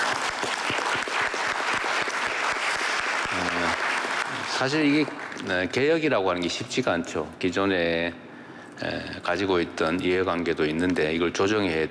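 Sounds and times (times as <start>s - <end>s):
applause: 0.0s - 5.8s
speech: 4.6s - 8.2s, 8.8s - 11.8s.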